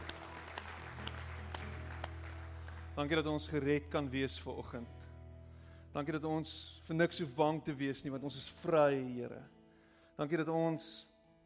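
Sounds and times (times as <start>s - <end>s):
audience clapping hands: 0.0s - 3.6s
speech: 3.0s - 5.0s, 6.0s - 9.6s, 10.2s - 11.1s.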